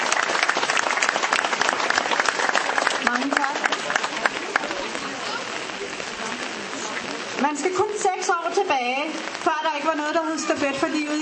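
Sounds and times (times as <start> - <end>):
audience applause at a Danish Relay for Life cancer charity event: 0.0 - 7.0
speech: 7.6 - 11.2.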